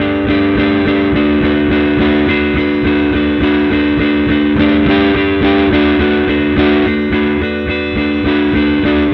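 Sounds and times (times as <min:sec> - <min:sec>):
indie rock guitar: 0:00.0 - 0:09.1.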